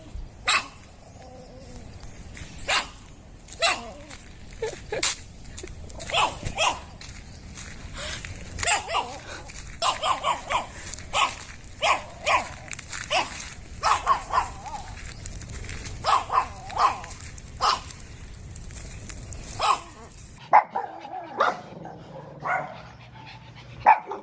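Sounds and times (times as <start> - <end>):
happy dog barking: 0.5 - 0.8, 2.7 - 3.0, 3.6 - 4.0, 6.1 - 6.9, 8.6 - 9.2, 9.8 - 14.9, 16.0 - 17.9, 19.6 - 22.9, 23.8 - 24.2.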